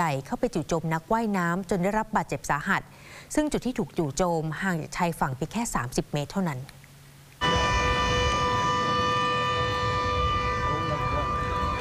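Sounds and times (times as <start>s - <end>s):
speech: 0.0s - 6.8s
beach warning siren at Coogee Beach in Sydney: 7.4s - 11.7s.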